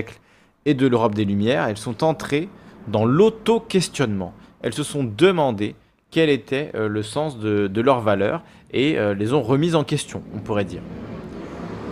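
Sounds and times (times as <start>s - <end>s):
speech: 0.0s - 11.2s
motorcycle engine roaring: 10.2s - 11.9s.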